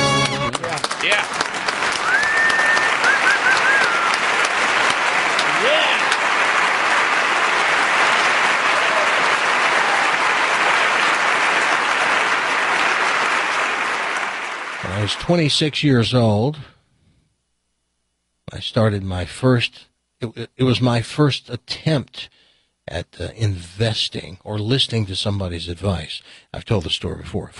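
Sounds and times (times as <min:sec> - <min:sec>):
audience applause: 0:00.2 - 0:15.6
speech: 0:15.2 - 0:16.7, 0:18.5 - 0:27.5.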